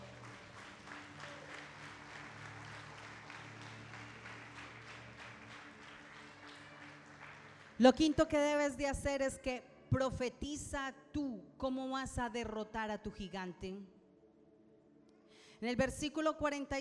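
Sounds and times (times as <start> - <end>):
audience clapping as an offering: 0.0 - 8.4
speech: 7.8 - 14.0, 15.6 - 16.7.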